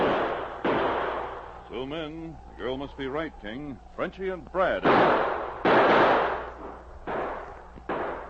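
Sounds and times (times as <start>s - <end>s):
gunfire from outlaws in a snowy wooded gunfight: 0.0s - 1.6s, 4.8s - 8.2s
speech: 1.8s - 5.4s.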